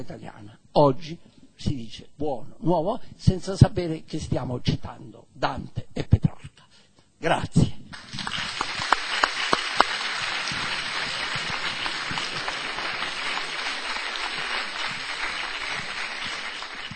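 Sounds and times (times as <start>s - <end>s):
speech: 0.0s - 6.4s, 7.2s - 8.4s
long warm applause: 7.9s - 16.9s.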